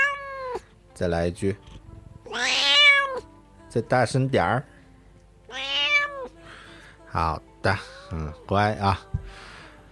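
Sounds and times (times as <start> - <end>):
cat meowing: 0.0 - 0.6, 2.3 - 3.3, 5.5 - 6.3
speech: 0.6 - 2.6, 3.7 - 4.7, 7.1 - 9.4.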